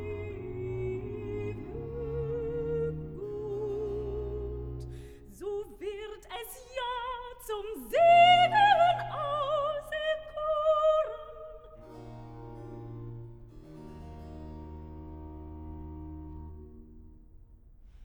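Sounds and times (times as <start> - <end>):
soprano singing recitative and chorale: 0.0 - 12.0.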